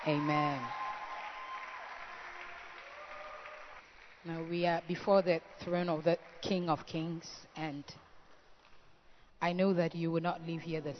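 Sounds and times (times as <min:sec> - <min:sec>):
speech: 0:00.0 - 0:00.8, 0:04.2 - 0:08.1, 0:09.4 - 0:10.9
congregation clapping at a church worship service: 0:00.0 - 0:04.8.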